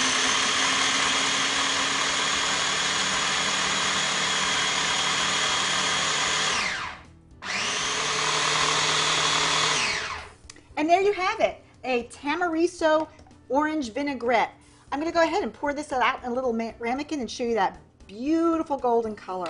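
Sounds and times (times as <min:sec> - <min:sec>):
food processor running: 0:00.0 - 0:10.3
speech: 0:10.9 - 0:19.4.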